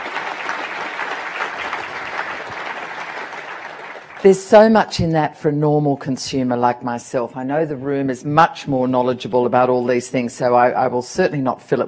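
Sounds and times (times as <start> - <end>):
audience applause: 0.0 - 4.6
speech: 4.2 - 11.8.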